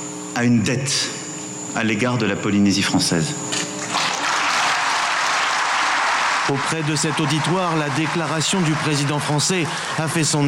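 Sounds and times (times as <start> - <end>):
speech: 0.4 - 1.2, 1.8 - 3.7, 6.5 - 10.4
audience applause after presidential speech: 3.8 - 10.4.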